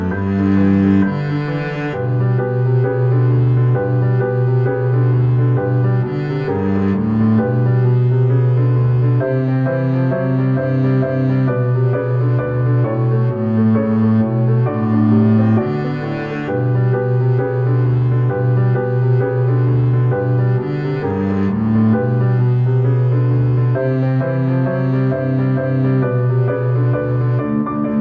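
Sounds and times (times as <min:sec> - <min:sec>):
boogie on double bass: 0:00.0 - 0:27.9.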